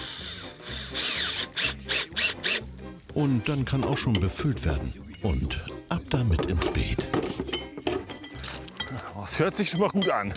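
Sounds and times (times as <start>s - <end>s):
cordless drill driving screws: 0.0s - 2.6s
speech: 3.2s - 7.9s, 9.2s - 10.3s.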